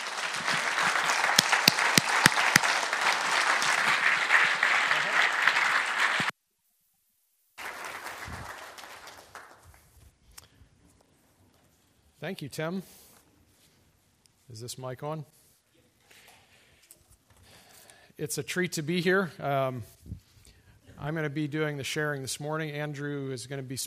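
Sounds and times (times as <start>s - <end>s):
church service audience clapping to welcome two speakers: 0.0s - 6.3s, 7.6s - 9.8s
speech: 12.3s - 13.0s, 14.5s - 15.4s, 18.2s - 20.0s, 21.0s - 23.8s.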